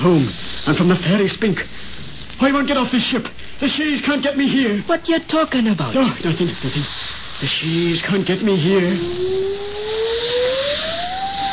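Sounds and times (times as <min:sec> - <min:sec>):
speech: 0:00.0 - 0:09.4
wind whistling in a storm: 0:06.0 - 0:11.5.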